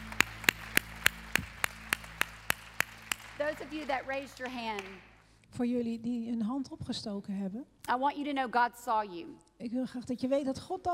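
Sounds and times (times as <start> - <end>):
audience clapping: 0.0 - 5.2
speech: 3.4 - 10.9.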